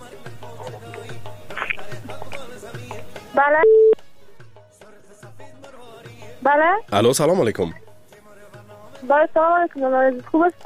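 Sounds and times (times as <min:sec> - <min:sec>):
speech: 0:03.4 - 0:03.8, 0:06.5 - 0:07.8, 0:09.0 - 0:10.6
telephone line tone connecting a call-in: 0:03.4 - 0:04.0.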